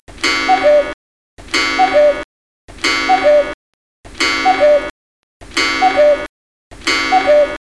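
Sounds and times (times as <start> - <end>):
cuckoo calling: 0.2 - 1.0, 1.6 - 2.3, 2.9 - 3.6, 4.2 - 4.9, 5.6 - 6.3, 6.9 - 7.6.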